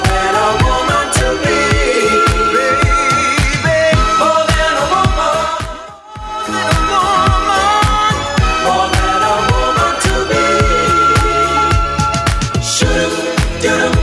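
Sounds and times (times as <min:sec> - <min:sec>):
1970s dance drum loop at 108 bpm: 0:00.0 - 0:14.0.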